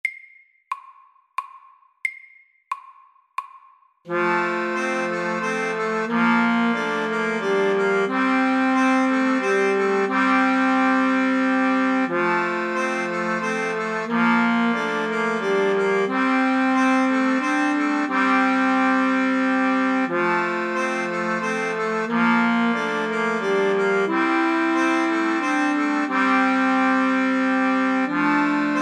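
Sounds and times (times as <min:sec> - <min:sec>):
musette music: 0:04.1 - 0:28.7.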